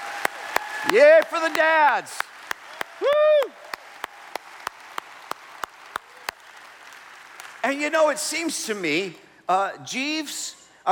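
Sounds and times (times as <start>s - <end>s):
audience applause for the dads at a Father's Day celebration: 0.0s - 8.3s
speech: 0.8s - 2.3s, 3.0s - 3.6s, 7.6s - 10.8s.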